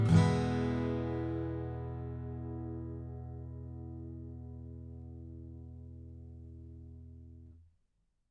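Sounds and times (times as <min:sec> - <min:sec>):
acoustic guitar strumming: 0:00.0 - 0:05.9.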